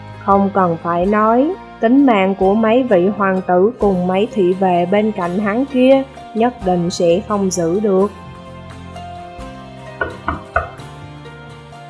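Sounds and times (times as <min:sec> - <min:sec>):
speech: 0:00.2 - 0:08.2
knocking on a door: 0:10.0 - 0:10.8.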